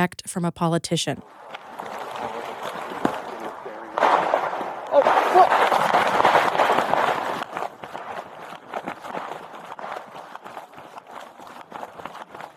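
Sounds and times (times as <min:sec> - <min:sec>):
speech: 0:00.0 - 0:01.6
police officers running: 0:01.5 - 0:12.5
gunshots: 0:01.8 - 0:07.6.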